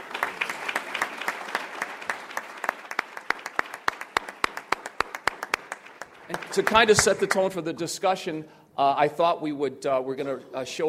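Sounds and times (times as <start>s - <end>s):
audience applause welcoming a speaker at a charity running group's gathering: 0.0s - 7.5s
speech: 6.3s - 10.8s.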